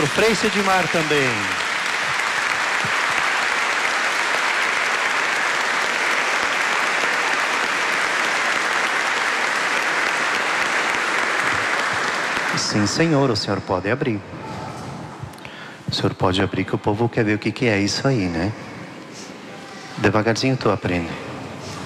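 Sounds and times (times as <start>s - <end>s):
round of applause: 0.0s - 13.1s
speech: 0.1s - 1.6s, 12.7s - 14.5s, 16.0s - 18.7s, 20.0s - 21.3s.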